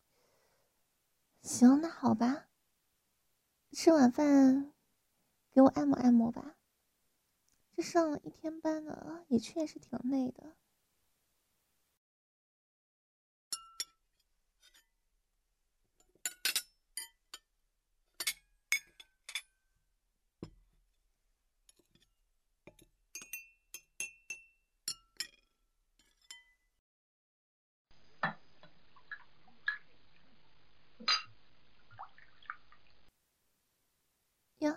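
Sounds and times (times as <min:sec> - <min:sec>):
speech: 0:01.4 - 0:02.5, 0:03.7 - 0:04.7, 0:05.6 - 0:06.6, 0:07.8 - 0:10.6
glass and crockery clinking while washing dishes: 0:22.7 - 0:25.4
dripping water: 0:28.2 - 0:30.4, 0:31.0 - 0:33.1
running tap water: 0:28.2 - 0:33.1.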